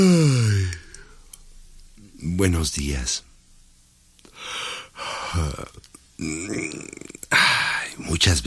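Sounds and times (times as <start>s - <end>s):
yawn: 0.0s - 1.0s, 5.0s - 7.8s
speech: 2.4s - 3.3s, 5.3s - 8.4s.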